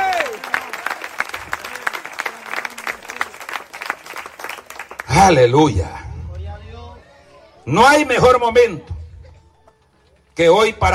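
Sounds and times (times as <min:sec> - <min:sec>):
audience applauding: 0:00.0 - 0:05.5
speech: 0:05.2 - 0:06.0, 0:07.7 - 0:08.9, 0:10.4 - 0:10.9.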